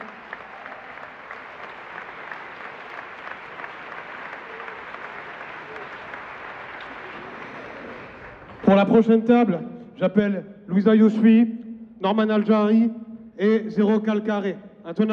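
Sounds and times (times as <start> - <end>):
audience applause: 0.0 - 8.8
speech: 8.7 - 15.1.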